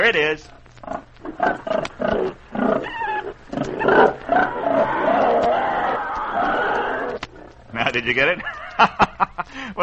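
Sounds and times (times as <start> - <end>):
speech: 0.0 - 3.0, 7.9 - 9.8
hogs and pigs: 0.8 - 7.7
laughter: 7.8 - 9.5.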